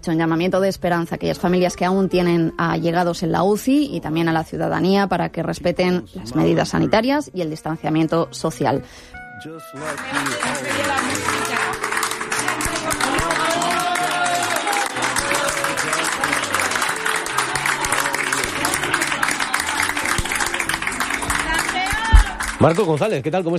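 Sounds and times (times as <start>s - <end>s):
speech: 0.0s - 11.4s, 22.6s - 23.5s
crowd applauding for a discharged patient: 9.7s - 23.5s
raised voices and cheers: 9.8s - 23.0s.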